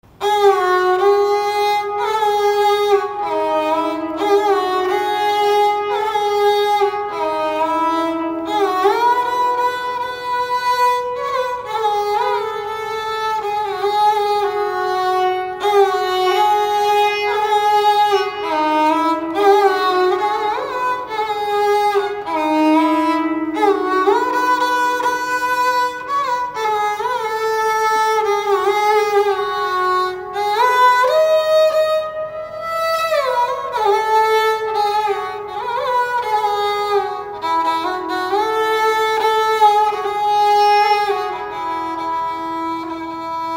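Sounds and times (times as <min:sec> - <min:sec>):
instrumental music: 0:00.0 - 0:43.5.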